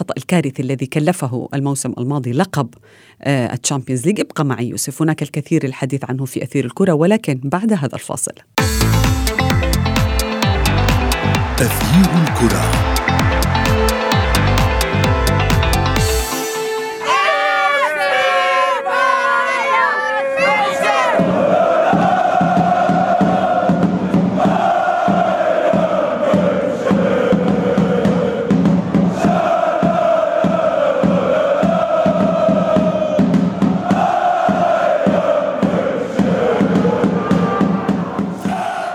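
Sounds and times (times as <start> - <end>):
speech: 0.0 - 8.7, 11.6 - 12.9
music: 8.6 - 18.0, 21.2 - 38.7
steady roar of cheering from football fans: 8.6 - 33.2, 33.8 - 38.9
huge crowd of football fans chanting in loud repeating sung phrases: 10.0 - 16.2, 16.9 - 38.9.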